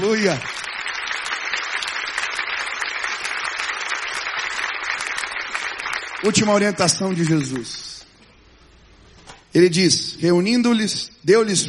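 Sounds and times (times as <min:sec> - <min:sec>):
speech: 0:00.0 - 0:00.6, 0:06.2 - 0:07.8, 0:09.5 - 0:11.6
audience applauding: 0:00.0 - 0:07.9.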